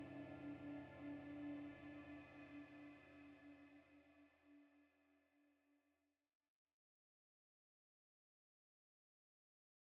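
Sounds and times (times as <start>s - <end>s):
evolving guitar drone swell: 0.0s - 4.1s.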